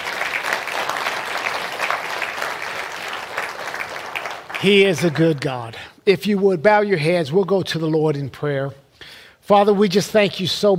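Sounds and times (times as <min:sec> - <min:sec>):
audience hand clapping: 0:00.0 - 0:05.8
speech: 0:04.6 - 0:08.8, 0:09.5 - 0:10.7.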